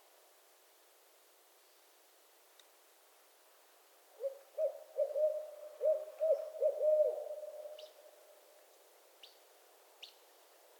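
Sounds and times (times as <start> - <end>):
barred owl hooting: 4.2 - 8.0.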